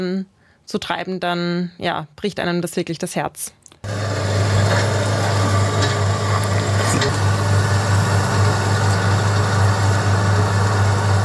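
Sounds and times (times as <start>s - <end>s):
speech: 0.0s - 4.0s
excavator heavy diesel engine idling: 3.9s - 11.2s
mechanical clanks and creaks: 4.5s - 9.2s.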